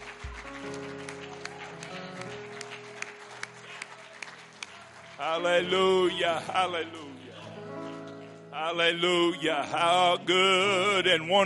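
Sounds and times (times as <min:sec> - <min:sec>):
audience clapping: 0:00.0 - 0:08.8
sustained organ chords: 0:00.0 - 0:11.4
speech: 0:05.2 - 0:07.2, 0:08.6 - 0:11.4.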